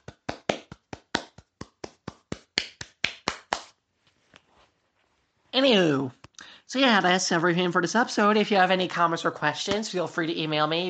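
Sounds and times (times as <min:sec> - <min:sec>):
hand claps: 0:00.0 - 0:03.8
speech: 0:05.6 - 0:10.8.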